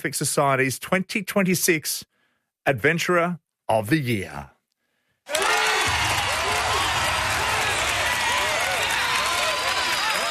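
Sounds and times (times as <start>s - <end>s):
speech: 0.0s - 4.6s
loud studio crowd cheering and whooping: 5.3s - 10.2s
studio crowd dense clapping: 5.3s - 10.2s.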